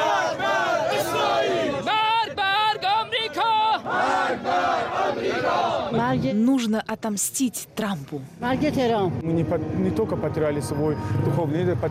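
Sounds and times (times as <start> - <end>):
crowd chanting: 0.0 - 6.0
speech: 5.2 - 11.8.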